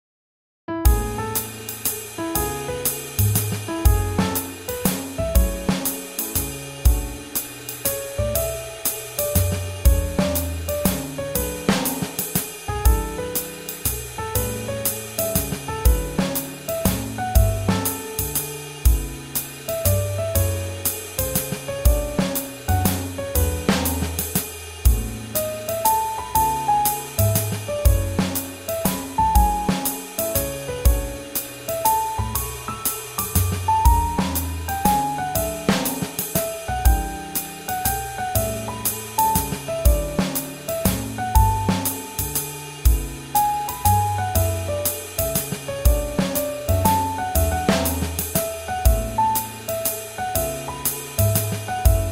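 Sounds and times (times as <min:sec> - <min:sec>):
swing jazz: 0:00.8 - 0:52.1.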